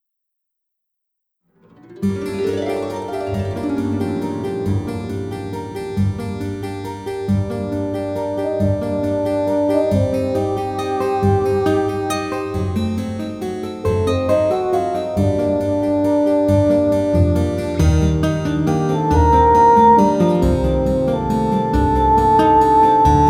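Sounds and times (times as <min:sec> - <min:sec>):
French travel music: 0:01.9 - 0:23.2.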